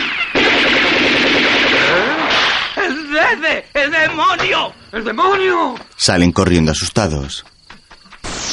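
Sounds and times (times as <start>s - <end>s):
gunshots in a 1979 science-fiction film scene: 0.0s - 2.8s
speech: 3.3s - 7.6s.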